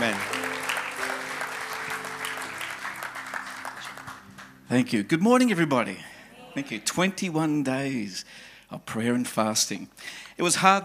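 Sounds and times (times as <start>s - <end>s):
audience applause welcoming a speaker to a morning church service: 0.0s - 4.9s
speech: 4.7s - 10.8s.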